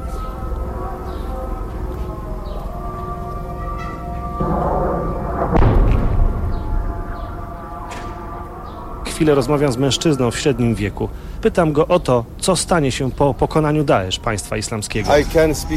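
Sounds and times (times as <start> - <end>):
muezzin's long wavering chanted call to prayer: 0.0 - 15.7
heavy rumbling explosions: 4.3 - 8.9
speech: 9.2 - 15.7.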